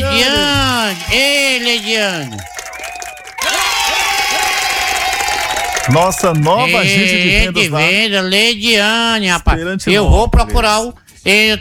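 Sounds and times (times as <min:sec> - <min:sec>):
loud round of applause: 0:00.0 - 0:07.8
crowd cheering: 0:00.0 - 0:07.9
speech: 0:00.2 - 0:02.6, 0:05.9 - 0:11.5
rising whistle-like calls: 0:02.0 - 0:04.0.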